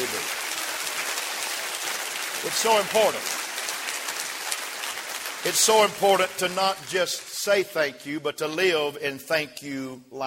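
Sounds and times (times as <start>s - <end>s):
audience clapping hands: 0.0s - 7.7s
speech: 2.4s - 3.4s, 5.4s - 10.2s.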